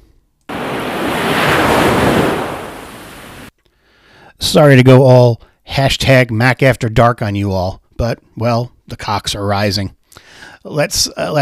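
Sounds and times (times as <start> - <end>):
ocean waves sound effect: 0.5 - 3.5
speech: 4.5 - 11.3.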